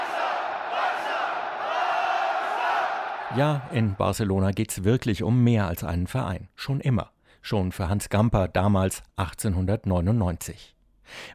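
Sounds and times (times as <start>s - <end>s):
stadium crowd roaring in Camp Nou: 0.0s - 4.0s
speech: 3.3s - 11.3s.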